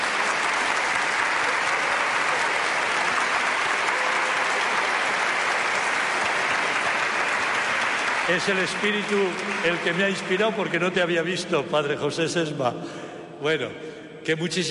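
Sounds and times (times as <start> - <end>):
audience applause: 0.0 - 11.0
speech: 8.3 - 14.6.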